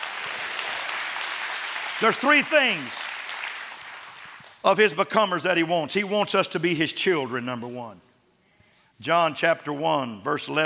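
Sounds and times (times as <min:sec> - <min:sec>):
audience clapping: 0:00.0 - 0:04.9
speech: 0:02.0 - 0:03.1, 0:04.6 - 0:08.1, 0:09.0 - 0:10.6.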